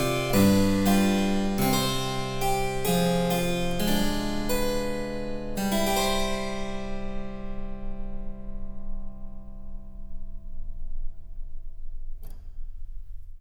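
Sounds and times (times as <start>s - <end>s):
harpsichord: 0.0s - 9.6s.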